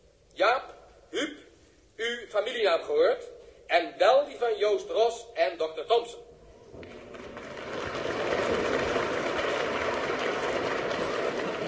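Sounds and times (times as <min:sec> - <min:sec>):
speech: 0:02.3 - 0:06.3
audience applause: 0:06.7 - 0:11.6.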